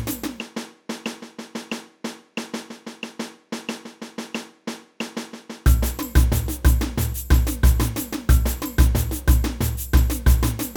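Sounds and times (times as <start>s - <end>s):
caixa snare drum in a samba band: 0.0s - 10.7s.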